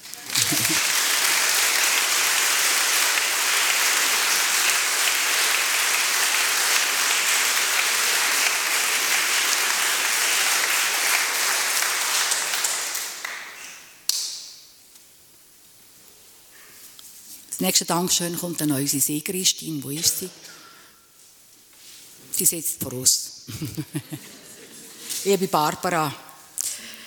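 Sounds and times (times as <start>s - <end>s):
audience applause: 0.0s - 13.6s
laughter: 0.2s - 7.7s, 23.5s - 25.1s
speech: 17.6s - 20.6s, 22.4s - 24.4s, 25.2s - 26.2s.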